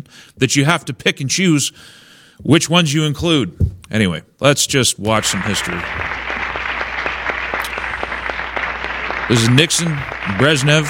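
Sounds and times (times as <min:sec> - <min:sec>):
speech: 0:00.0 - 0:06.3, 0:09.3 - 0:10.8
crowd applauding at a diplomatic ceremony: 0:05.1 - 0:10.8.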